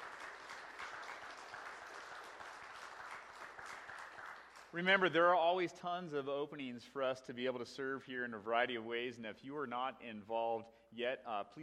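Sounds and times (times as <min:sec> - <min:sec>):
round of applause: 0:00.0 - 0:05.3
speech: 0:04.7 - 0:11.6.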